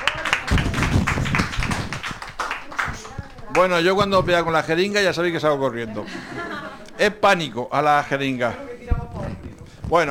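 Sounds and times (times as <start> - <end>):
audience applause: 0.0 - 3.7
speech: 3.6 - 8.7, 9.9 - 10.1
laughter: 5.7 - 7.2.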